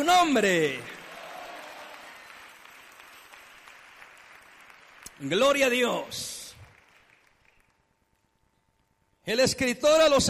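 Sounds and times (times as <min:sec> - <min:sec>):
speech: 0:00.0 - 0:01.0, 0:05.2 - 0:06.4, 0:09.3 - 0:10.2
audience applause: 0:00.8 - 0:07.8.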